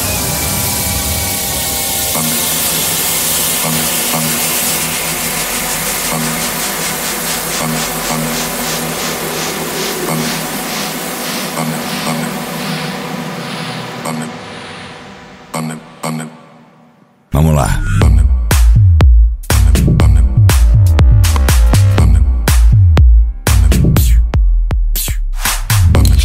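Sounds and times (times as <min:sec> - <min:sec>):
mega funk electro funk music: 0:02.1 - 0:13.0, 0:18.0 - 0:26.2.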